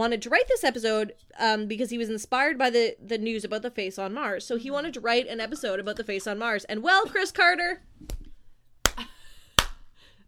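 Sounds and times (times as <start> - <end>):
speech: 0.0 - 8.1
slow hand claps: 8.0 - 10.2.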